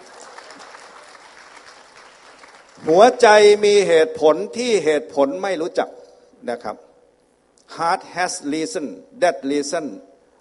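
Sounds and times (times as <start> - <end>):
audience applause during a talk: 0.0 - 2.9
speech: 2.8 - 6.8, 7.7 - 10.1.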